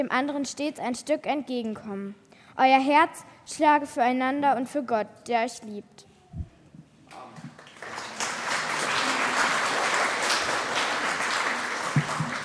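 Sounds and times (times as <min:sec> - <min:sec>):
speech: 0:00.0 - 0:06.1
audience applauding in church: 0:07.2 - 0:12.4.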